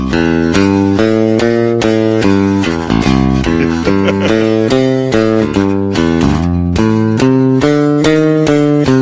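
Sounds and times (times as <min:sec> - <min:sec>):
electric bass guitar playing blues picked near the bridge: 0:00.0 - 0:09.0
laughter: 0:03.4 - 0:04.9.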